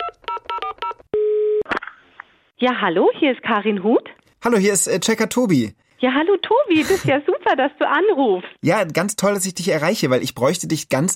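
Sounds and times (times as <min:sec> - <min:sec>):
touch-tone telephone keypad dialing beeps: 0:00.0 - 0:01.6
speech: 0:02.6 - 0:11.1.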